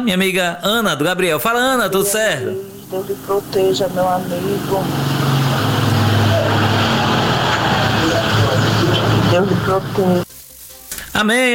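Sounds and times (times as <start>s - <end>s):
speech: 0.0s - 5.2s, 9.4s - 10.2s, 11.2s - 11.5s
road traffic with vehicles passing by a caller's location: 2.5s - 10.3s.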